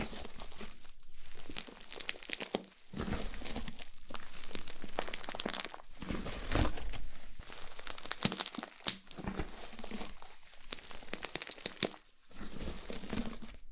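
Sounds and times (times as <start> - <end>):
slime squeezed and worked by hand: 0.0 - 13.7.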